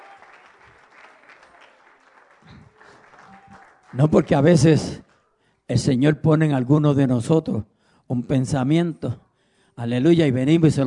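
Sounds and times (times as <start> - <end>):
audience applause: 0.0 - 5.0
speech: 3.9 - 5.0, 5.7 - 9.2, 9.8 - 10.8.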